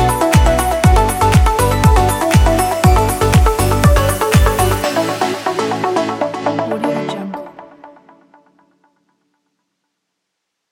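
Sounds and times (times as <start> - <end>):
summer upbeat pop music: 0.0 - 8.4.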